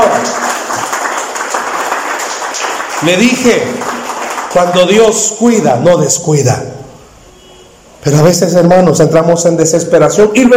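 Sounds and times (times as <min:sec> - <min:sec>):
audience applause: 0:00.0 - 0:05.2
speech: 0:03.0 - 0:03.9, 0:04.5 - 0:06.8, 0:08.0 - 0:10.5.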